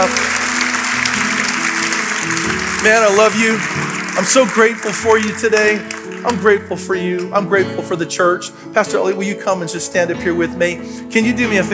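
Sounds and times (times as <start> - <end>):
audience clapping: 0.0 - 7.3
speech: 2.8 - 11.7.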